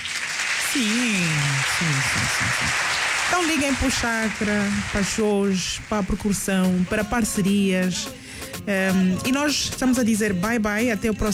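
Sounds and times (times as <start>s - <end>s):
applause for a percussionist at an Angolan show: 0.0s - 8.1s
laughter: 0.6s - 11.3s
speech: 0.7s - 11.3s.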